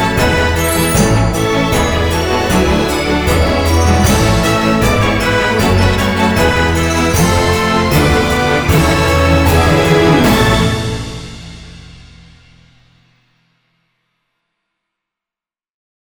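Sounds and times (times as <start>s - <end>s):
sleigh bells kit: 0.0s - 12.1s.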